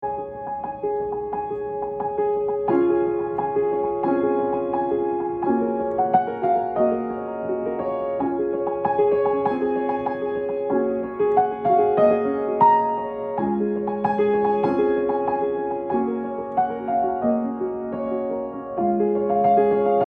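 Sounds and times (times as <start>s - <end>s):
piano: 0.0s - 20.0s.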